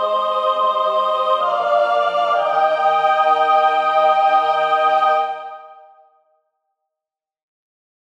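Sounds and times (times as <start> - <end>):
soprano singing an alleluia: 0.0 - 5.9.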